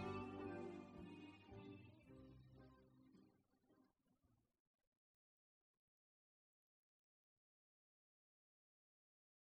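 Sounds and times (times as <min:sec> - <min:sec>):
modulated guitar solo: 0:00.0 - 0:02.7.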